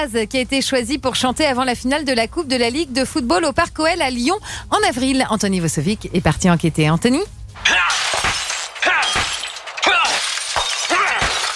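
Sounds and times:
speech: 0.0s - 8.0s
loudspeakers being smashed at a football stadium in Lyon: 7.6s - 11.5s
shattering and breaking loudspeaker debris: 7.6s - 11.5s.

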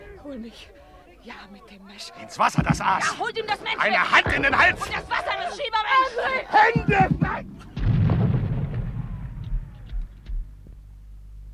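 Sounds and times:
speech: 0.3s - 7.7s
laughter: 2.0s - 7.8s
duller thuds and low reverberating rumbles: 4.1s - 5.2s, 6.7s - 11.0s
artillery cannon fire: 7.3s - 10.6s.

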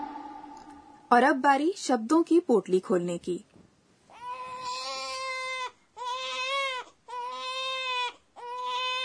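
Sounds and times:
speech: 1.1s - 3.5s
baby wailing loudly: 4.1s - 9.0s.

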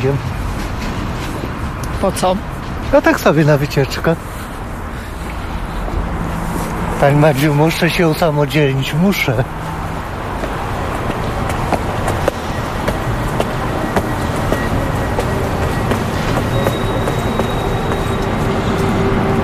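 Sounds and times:
speech: 0.0s - 0.4s, 2.0s - 4.3s, 7.0s - 9.6s
trains rumbling at a railway station: 0.0s - 19.4s
thin high squealing tones from wheels or brakes: 12.3s - 19.4s.

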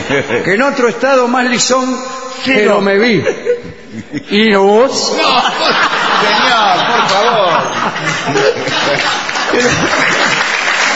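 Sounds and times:
laughter: 0.0s - 0.5s, 3.1s - 4.4s, 5.0s - 10.7s
speech: 0.1s - 10.6s
theatre audience applause: 6.2s - 10.9s.

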